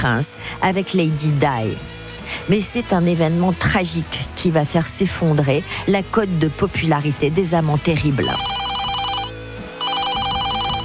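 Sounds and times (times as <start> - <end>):
speech: 0.0 - 8.6
telephone ringing: 8.2 - 10.8.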